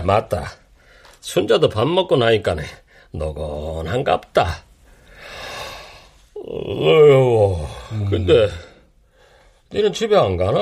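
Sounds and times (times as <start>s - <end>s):
speech: 0.0s - 0.6s, 1.2s - 4.7s, 6.4s - 8.7s, 9.7s - 10.5s
yawn: 5.4s - 8.8s.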